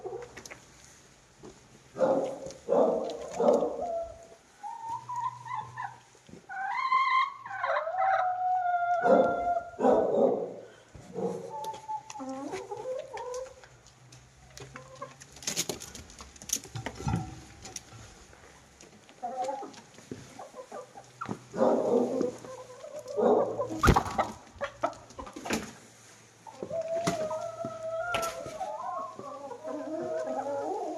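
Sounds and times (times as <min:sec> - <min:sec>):
hens clucking: 0:00.0 - 0:00.6, 0:02.0 - 0:30.9
knocks and clatter: 0:16.6 - 0:18.0.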